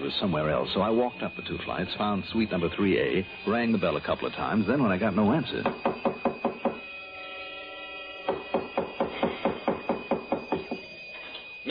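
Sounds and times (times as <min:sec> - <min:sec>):
speech: 0:00.1 - 0:06.1
heavy pounding on a door: 0:05.6 - 0:06.8, 0:08.2 - 0:10.9.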